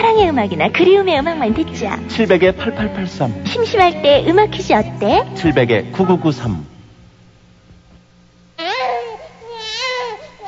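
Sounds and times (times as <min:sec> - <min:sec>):
speech: 0:00.1 - 0:06.7
newborn baby crying: 0:08.6 - 0:10.4.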